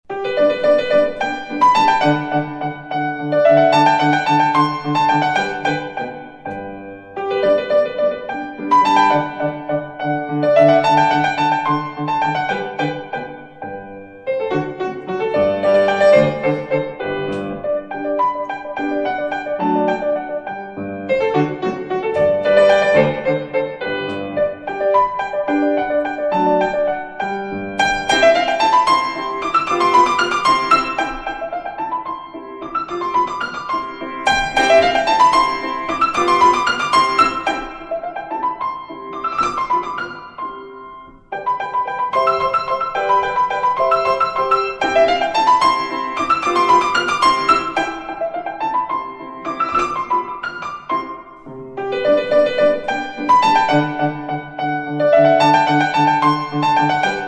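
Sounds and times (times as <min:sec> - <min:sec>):
waltz music: 0:00.1 - 0:57.2.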